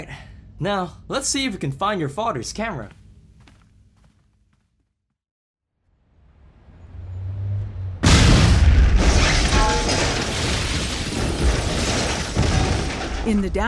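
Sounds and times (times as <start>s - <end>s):
speech: 0.6s - 3.0s, 13.3s - 13.6s
building rumble: 5.9s - 9.1s
government building facade exploding: 8.0s - 13.3s.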